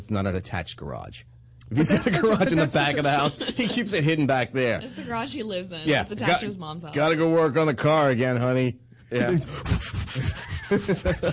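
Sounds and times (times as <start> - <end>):
speech: 0.0 - 11.3
laughter: 1.7 - 5.2, 9.2 - 11.3
foot pump inflating an air mattress: 9.2 - 11.3.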